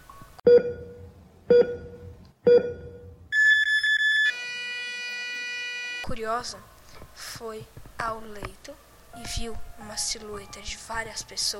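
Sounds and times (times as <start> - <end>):
cardiac monitor beeping: 0.5 - 6.1
speech: 6.2 - 11.5.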